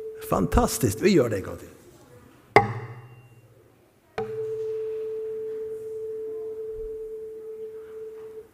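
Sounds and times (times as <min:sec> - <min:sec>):
speech: 0:00.3 - 0:01.8
tuning fork knock on resonance box: 0:02.6 - 0:03.1
tuning fork on resonance box ringing tone: 0:04.2 - 0:08.4.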